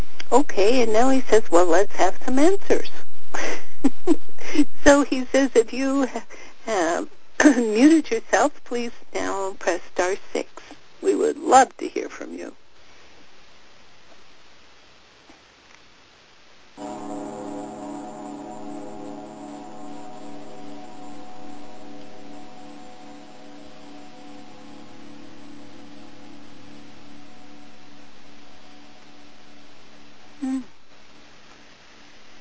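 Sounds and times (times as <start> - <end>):
faint hiss: 0.0 - 32.4
speech: 0.3 - 12.6, 16.8 - 17.4
gong struck and ringing: 16.8 - 30.0.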